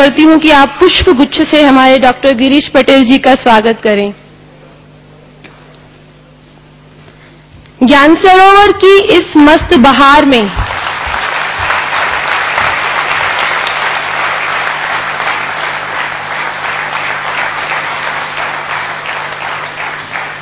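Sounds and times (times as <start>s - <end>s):
speech: 0.0s - 4.2s, 7.8s - 10.8s
audience applause welcoming guest Dr. Girish Patel at Gyan Sarovar: 10.5s - 20.3s.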